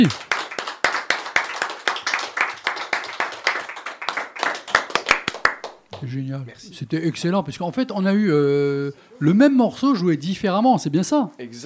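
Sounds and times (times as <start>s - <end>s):
speech: 0.0s - 0.2s, 6.0s - 11.6s
audience applauding loudly: 0.0s - 6.2s.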